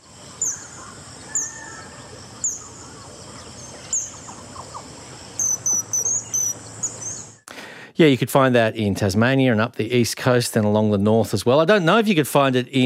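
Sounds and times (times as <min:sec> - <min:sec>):
buzzing insects: 0:00.0 - 0:07.4
azure kingfisher calling: 0:00.4 - 0:07.3
speech: 0:08.0 - 0:12.8.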